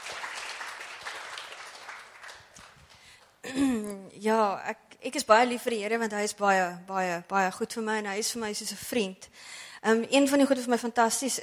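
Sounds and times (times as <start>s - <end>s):
audience clapping hands: 0.0s - 3.4s
speech: 3.5s - 11.4s.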